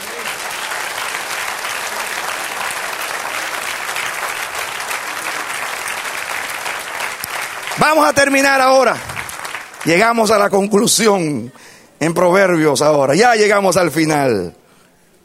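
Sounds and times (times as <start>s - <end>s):
audience applause: 0.0s - 10.7s
speech: 7.8s - 9.1s, 9.8s - 14.6s.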